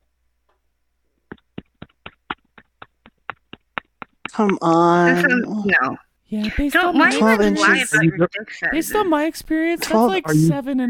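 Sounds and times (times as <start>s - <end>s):
penis smacked against a phone: 1.2s - 4.6s
speech: 4.4s - 10.8s.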